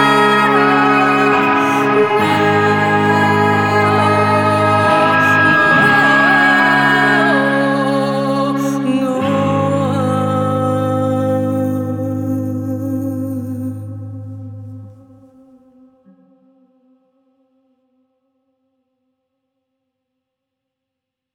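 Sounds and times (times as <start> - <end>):
song with guitar: 0.0 - 15.2.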